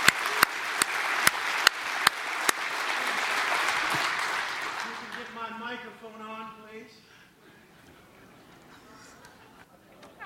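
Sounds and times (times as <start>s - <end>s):
audience applause: 0.0s - 5.6s
speech: 6.0s - 7.2s.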